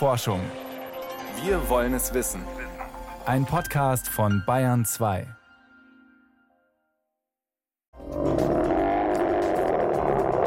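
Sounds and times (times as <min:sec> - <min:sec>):
speech: 0:00.0 - 0:00.7, 0:01.4 - 0:02.6, 0:03.2 - 0:05.4
adult polar bear roaring: 0:08.0 - 0:10.4.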